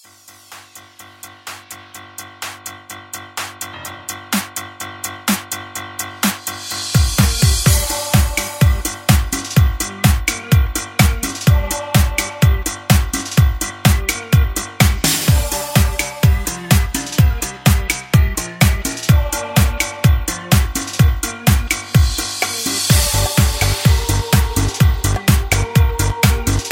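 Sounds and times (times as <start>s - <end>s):
instrumental music: 0.2s - 26.6s.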